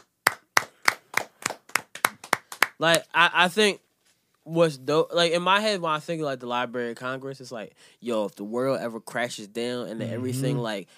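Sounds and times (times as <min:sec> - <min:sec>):
hand claps: 0:00.0 - 0:03.1
speech: 0:02.8 - 0:03.8, 0:04.5 - 0:10.9.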